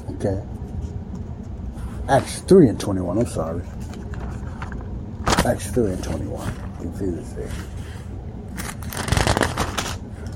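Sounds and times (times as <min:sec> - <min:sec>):
speech: 0:00.2 - 0:00.6, 0:02.1 - 0:03.8, 0:05.4 - 0:07.8
Bible paper pages rustling as they are folded: 0:03.6 - 0:10.3.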